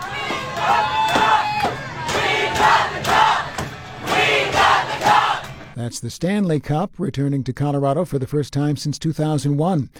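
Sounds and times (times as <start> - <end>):
large crowd of hockey fans cheering and shouting: 0.0 - 5.7
speech: 5.8 - 9.9.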